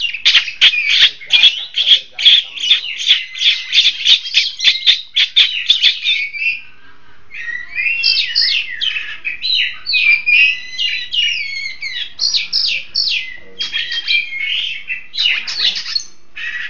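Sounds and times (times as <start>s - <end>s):
long-tailed shrike song with sharp chirps and trills: 0.0s - 16.6s.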